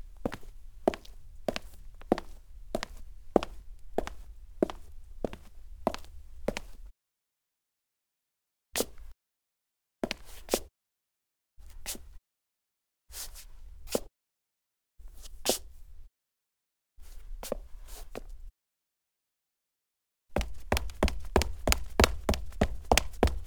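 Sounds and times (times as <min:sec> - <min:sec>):
foley footsteps on clean cement: 0:00.2 - 0:06.8, 0:20.4 - 0:23.4.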